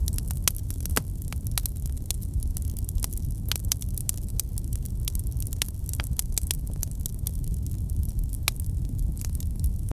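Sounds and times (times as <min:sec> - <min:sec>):
soothing crackling: 0:00.0 - 0:09.9.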